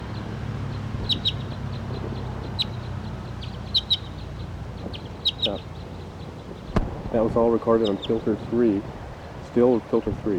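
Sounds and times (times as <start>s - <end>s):
wild bird chirping: 0.0s - 10.1s
speech: 5.5s - 5.8s, 7.1s - 10.3s
steady low rumble: 6.5s - 9.1s.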